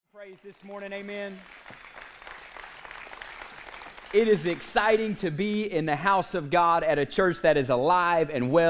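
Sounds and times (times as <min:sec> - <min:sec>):
speech: 0:00.2 - 0:01.9, 0:04.1 - 0:08.6
large crowd applause: 0:00.2 - 0:05.2.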